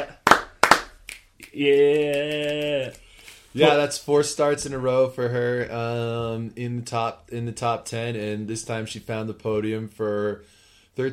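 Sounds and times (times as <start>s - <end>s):
hands clapping, round of applause: 0.0s - 3.5s
speech: 1.6s - 11.1s.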